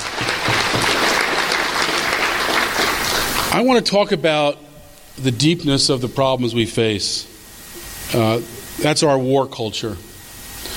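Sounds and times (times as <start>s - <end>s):
audience applause: 0.0s - 3.6s
speech: 3.6s - 4.6s, 5.2s - 7.3s, 8.1s - 10.1s.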